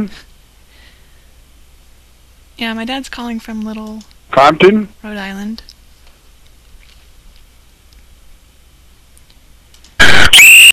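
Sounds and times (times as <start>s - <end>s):
speech: 0.0s - 0.3s, 2.6s - 5.7s
shrill whistle blasts: 10.0s - 10.7s.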